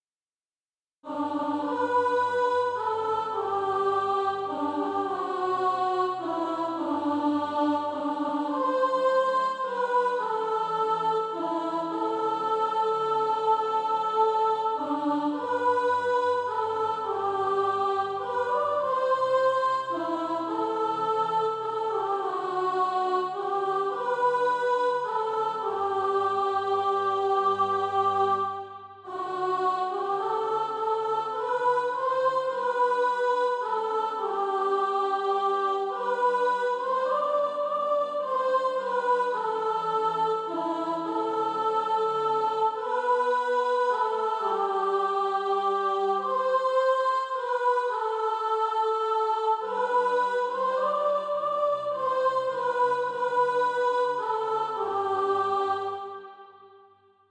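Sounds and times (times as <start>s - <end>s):
soprano singing practice music: 1.0s - 56.4s.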